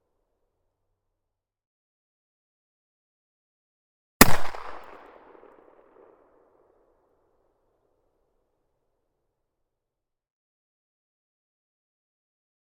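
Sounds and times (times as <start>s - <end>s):
SPAS-12 combat shotgun firing semi-automatic: 4.2s - 5.6s.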